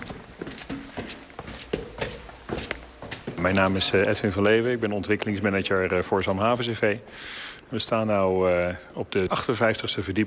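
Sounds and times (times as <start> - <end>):
footsteps climbing a staircase to a 56th-floor restaurant: 0.0 - 5.5
speech: 3.4 - 10.2.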